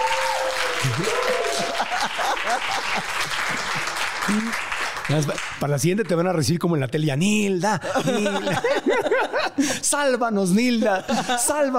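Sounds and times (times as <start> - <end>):
audience applause: 0.0 - 6.2
speech: 0.8 - 1.2, 2.4 - 11.7
laughter: 0.8 - 4.5, 7.7 - 9.9, 10.7 - 11.7.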